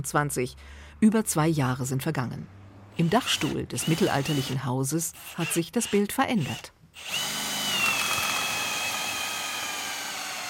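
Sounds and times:
speech: 0.0 - 7.4
power drill boring into wooden beam: 3.0 - 4.6, 5.2 - 10.4.

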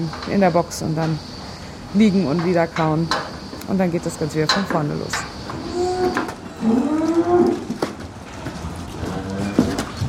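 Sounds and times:
speech: 0.0 - 1.3, 1.9 - 5.3, 6.0 - 7.5
dairy cows mooing in a barn: 5.5 - 8.0, 8.9 - 9.9.

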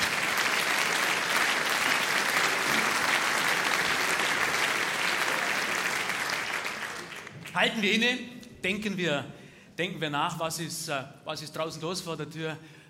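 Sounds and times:
audience applause: 0.0 - 7.7
speech: 7.6 - 12.8.

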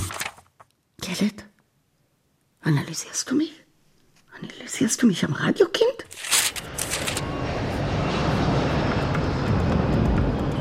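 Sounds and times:
speech: 1.1 - 1.5, 2.6 - 3.6, 4.4 - 6.2
airplane in flight engine drone: 6.1 - 10.5.

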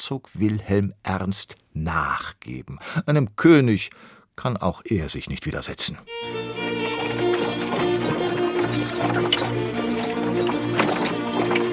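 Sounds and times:
speech: 0.0 - 7.3
music with sustained tones: 6.0 - 11.7
horse-drawn carts clip-clopping: 6.2 - 11.7
cart wheels rattling: 6.3 - 11.7.

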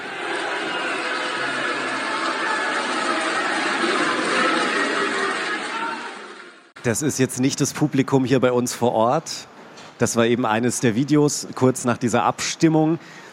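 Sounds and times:
senators cheering after a vote: 0.0 - 6.8
speech: 6.8 - 13.3.

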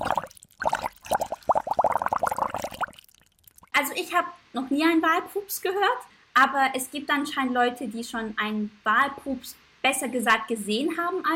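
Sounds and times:
underwater bubbling: 0.0 - 3.7
speech: 4.1 - 11.3.

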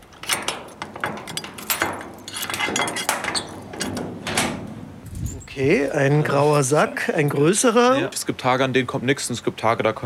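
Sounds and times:
metallic clacks and scrapes of a container being unlatched and opened: 0.0 - 5.5
key rattling and clicking in a lock: 0.0 - 5.6
speech: 5.6 - 10.0.

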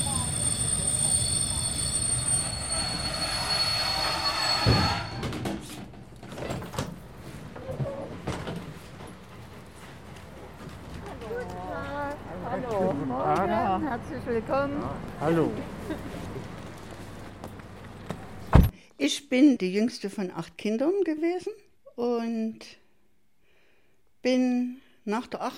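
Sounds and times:
terminating train wheels squealing on rails at Chemnitz main station: 0.0 - 5.8
train clanks and rattles: 0.0 - 7.2, 7.8 - 11.4
rumbling rail noise: 0.0 - 18.5
speech: 14.2 - 16.1, 19.1 - 22.8, 24.2 - 25.5.

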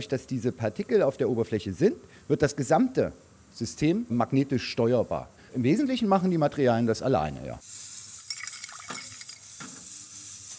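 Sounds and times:
speech: 0.0 - 7.7
ultrasonic bath running with liquid holding suspended rust particles: 7.4 - 10.5
watery clinks and bubbling in an ultrasonic bath: 8.2 - 9.5.

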